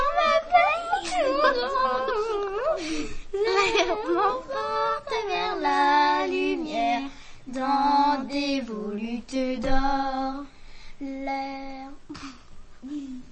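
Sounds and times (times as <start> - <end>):
chanting: 0.0 - 2.8, 3.4 - 10.4.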